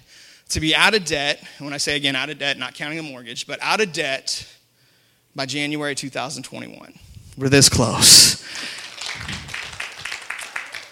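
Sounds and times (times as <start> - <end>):
speech: 0.5 - 4.6, 5.3 - 9.3
crowd clapping hands: 8.5 - 10.8.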